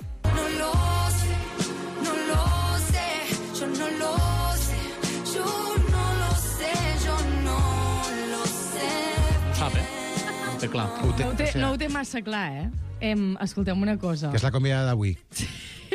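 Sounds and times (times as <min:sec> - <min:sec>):
song on a Catalan radio show: 0:00.0 - 0:13.8
speech: 0:10.6 - 0:15.6.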